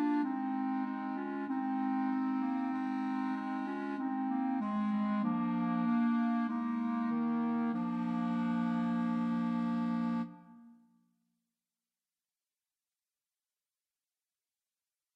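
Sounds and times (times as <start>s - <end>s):
clarinet trio playing: 0.0s - 10.5s.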